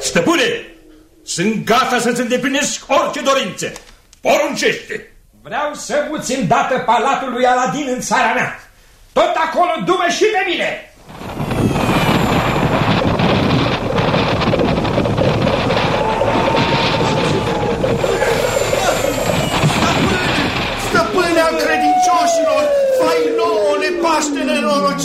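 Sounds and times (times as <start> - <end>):
speech: 0.1 - 0.7, 1.3 - 11.2
rushing wind: 11.0 - 25.0.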